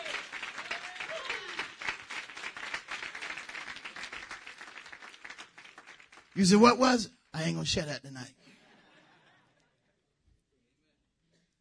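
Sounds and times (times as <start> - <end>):
audience clapping: 0.0 - 7.0
speech: 6.4 - 8.4.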